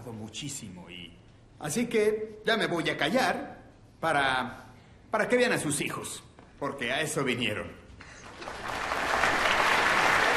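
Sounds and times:
speech: 0.1s - 7.8s
audience applause at a high school choir's annual autumn concert: 8.2s - 10.3s.

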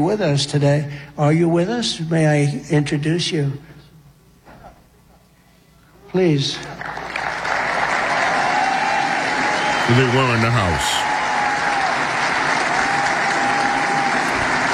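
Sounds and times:
speech: 0.0s - 3.7s, 6.1s - 7.0s, 9.9s - 11.1s
audience applause: 6.7s - 14.7s.

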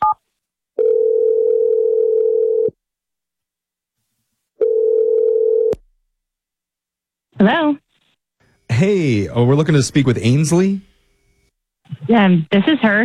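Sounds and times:
telephone ringback tones on the line: 0.8s - 2.7s, 4.6s - 5.8s
speech: 8.8s - 10.9s, 12.1s - 13.0s.

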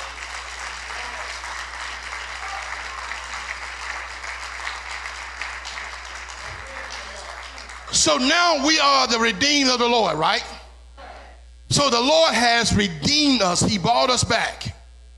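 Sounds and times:
audience clapping hands: 0.0s - 8.3s
speech: 8.0s - 10.5s, 11.7s - 14.7s.

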